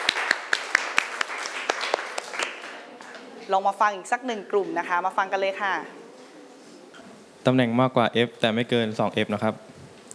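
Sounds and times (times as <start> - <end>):
group of students clapping: 0.0 - 3.1
speech: 3.5 - 6.0, 7.4 - 9.7.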